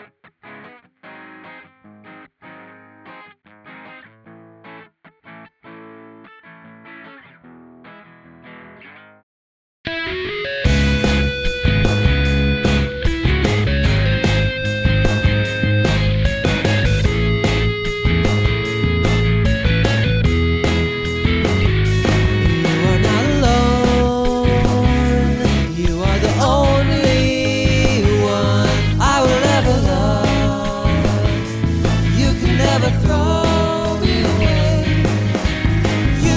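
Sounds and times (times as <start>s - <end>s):
song recording playing: 9.9s - 36.3s.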